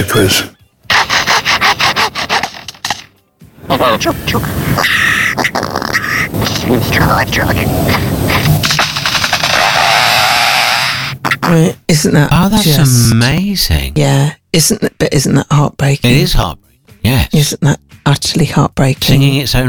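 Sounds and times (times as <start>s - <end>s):
speech: 0.0s - 0.6s, 3.7s - 5.8s, 6.4s - 8.8s, 11.4s - 19.6s
bird mimicking mechanical bandsaws: 0.9s - 3.1s, 7.9s - 11.5s.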